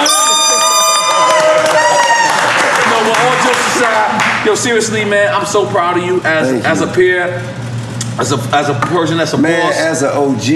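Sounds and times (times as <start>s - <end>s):
shrill whistles or high-pitched horn tones: 0.0s - 2.4s
crowd cheering and clapping: 0.0s - 4.7s
speech: 4.4s - 7.6s, 8.2s - 10.5s.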